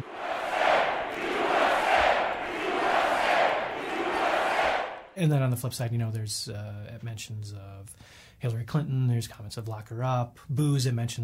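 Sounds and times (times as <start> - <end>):
rally crowd cheering: 0.0 - 5.2
speech: 5.2 - 11.2.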